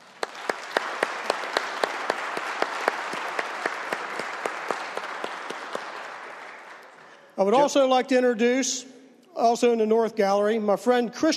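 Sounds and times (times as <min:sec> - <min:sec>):
sharp individual claps: 0:00.0 - 0:07.2
applause in the West Virginia House chamber: 0:00.0 - 0:07.5
speech: 0:07.4 - 0:11.3.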